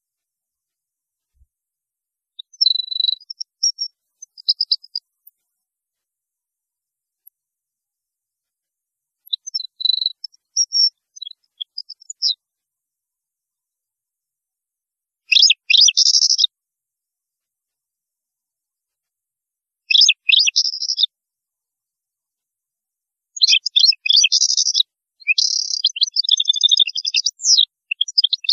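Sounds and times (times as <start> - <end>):
European goldfinch song: 2.4 - 5.0, 9.3 - 12.4, 15.3 - 16.5, 19.9 - 21.1, 23.4 - 28.5.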